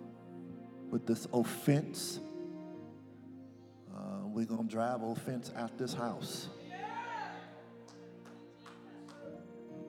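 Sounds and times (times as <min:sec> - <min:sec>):
speech: 0:00.9 - 0:02.3, 0:04.3 - 0:06.6
hand claps: 0:07.9 - 0:09.4.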